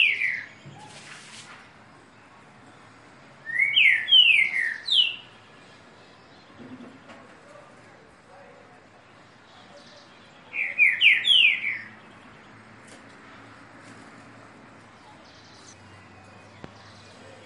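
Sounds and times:
green-winged saltator singing downslurred whistles: 0.0s - 1.0s, 3.4s - 5.3s, 10.5s - 12.0s.

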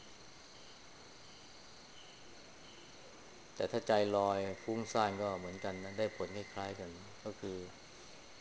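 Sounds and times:
crickets chirping: 0.0s - 8.4s
speech: 3.6s - 7.8s.

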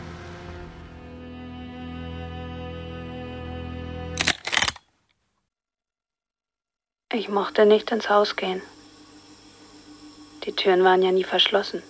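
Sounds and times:
car engine humming as the car slowly pulls away: 0.0s - 4.1s
speech: 7.1s - 8.8s, 10.4s - 11.8s.

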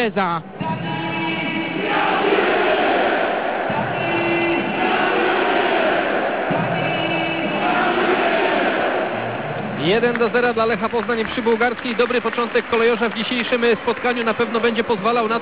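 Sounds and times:
speech: 0.0s - 0.6s, 9.8s - 15.3s
stadium crowd chanting: 0.6s - 9.8s.

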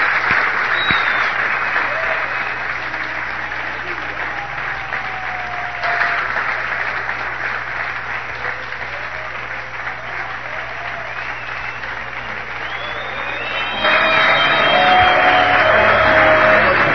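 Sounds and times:
church congregation applause: 0.0s - 16.9s
thin whistles: 0.7s - 1.4s, 12.6s - 15.0s.

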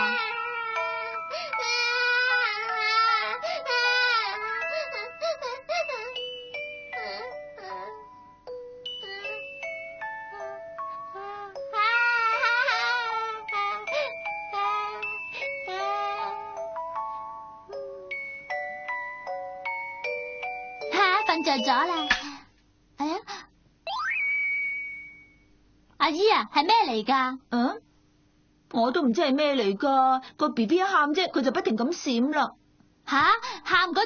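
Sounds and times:
music box melody: 0.0s - 22.4s, 23.9s - 25.4s
speech: 21.6s - 22.2s, 26.1s - 27.8s, 28.8s - 34.0s.

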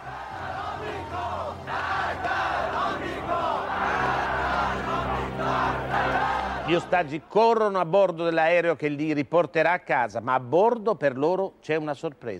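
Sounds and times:
large crowd shouting and cheering at an airport: 0.0s - 7.4s
speech: 6.7s - 12.3s.

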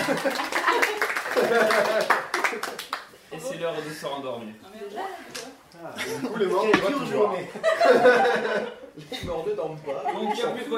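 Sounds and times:
laughter: 0.0s - 2.9s, 6.0s - 10.7s
hand clapping: 0.0s - 3.1s
speech: 0.2s - 0.8s, 3.8s - 10.7s.

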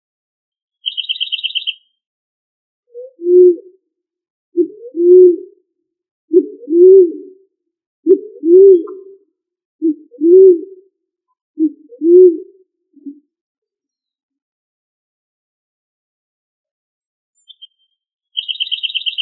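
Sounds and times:
pigeon or dove giving low coos: 2.9s - 3.8s, 4.6s - 5.5s, 6.3s - 7.4s, 8.1s - 9.2s, 9.8s - 10.8s, 11.6s - 13.2s.

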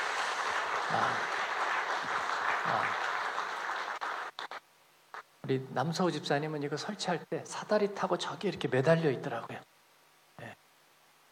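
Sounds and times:
audience applause: 0.0s - 4.6s
speech: 0.9s - 1.4s, 2.6s - 3.0s, 5.5s - 9.7s.

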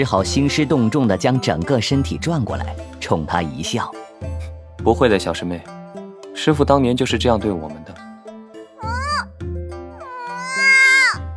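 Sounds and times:
speech: 0.0s - 5.8s, 6.4s - 7.8s
young girl howling: 8.8s - 9.4s, 10.0s - 11.2s.

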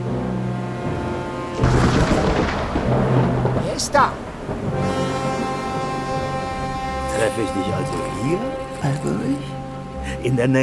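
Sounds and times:
thunderstorm: 0.9s - 7.1s
speech: 2.9s - 5.3s, 7.2s - 10.6s.

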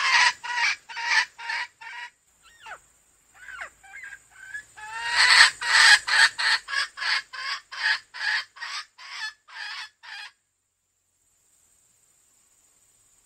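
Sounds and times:
female junglefowl clucking: 0.0s - 10.4s.

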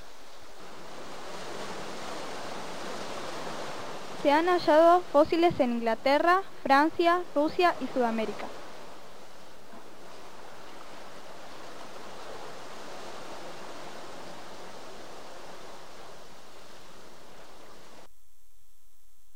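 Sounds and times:
water sound effect in background: 0.0s - 18.1s
speech: 4.2s - 8.6s.

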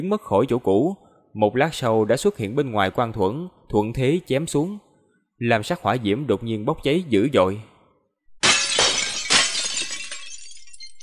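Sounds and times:
speech: 0.0s - 7.7s
ice shields shattering: 8.4s - 11.0s.

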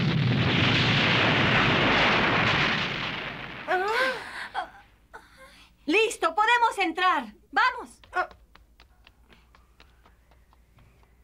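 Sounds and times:
thunder attack explosion effect: 0.0s - 4.2s
speech: 6.8s - 8.4s.

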